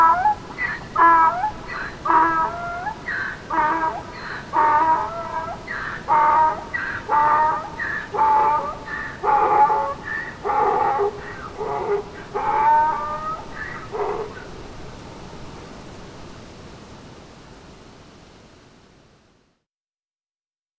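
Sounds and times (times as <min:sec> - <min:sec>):
donkey braying: 0:00.0 - 0:14.5.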